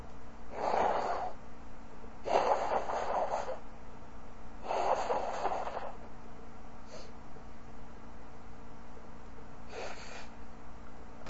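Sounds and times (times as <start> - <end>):
woman blowing nose from winter cold: 0.5 - 1.4, 2.3 - 3.6, 4.7 - 6.0, 9.7 - 10.3.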